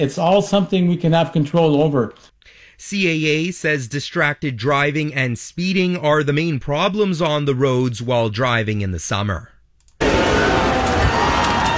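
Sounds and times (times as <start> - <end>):
speech: 0.0 - 9.5
fans cheering during Canada's World Cup knockout match against South Africa: 10.0 - 11.7.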